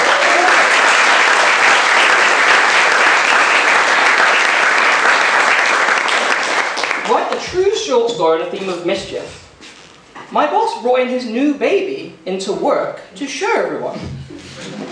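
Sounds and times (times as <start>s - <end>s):
audience applause: 0.0s - 7.2s
speech: 8.0s - 9.4s, 10.3s - 14.9s.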